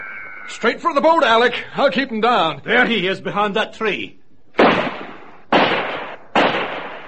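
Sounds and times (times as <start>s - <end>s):
speech: 0.5s - 4.2s
gunshot: 4.6s - 7.0s.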